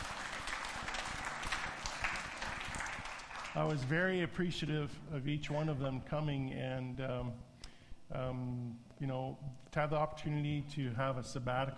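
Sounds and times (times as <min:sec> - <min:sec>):
audience applause: 0:00.0 - 0:03.8
speech: 0:03.6 - 0:07.5, 0:08.1 - 0:11.7.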